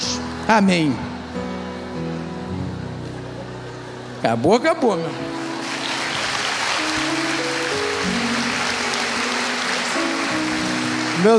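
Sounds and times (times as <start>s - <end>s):
sustained low keyboard notes: 0.0s - 11.3s
speech: 0.5s - 1.1s, 4.2s - 5.4s, 11.2s - 11.3s
church audience applause: 5.4s - 11.3s.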